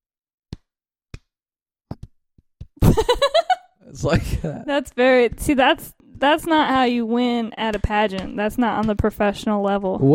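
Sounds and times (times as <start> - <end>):
loud laughter: 2.8 - 3.6
speech: 3.9 - 10.1
hand claps imitating butt cheeks clapping: 7.6 - 9.1.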